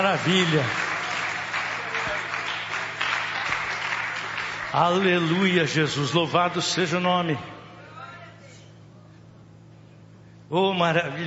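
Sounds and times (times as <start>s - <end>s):
speech: 0.0s - 0.8s, 4.7s - 7.5s, 10.5s - 11.2s
audience clapping hands: 0.0s - 5.4s.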